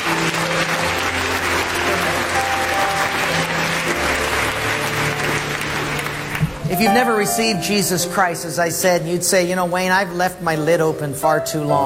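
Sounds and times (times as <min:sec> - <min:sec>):
applause for families dedicating their babies: 0:00.0 - 0:07.6
speech: 0:06.7 - 0:11.8.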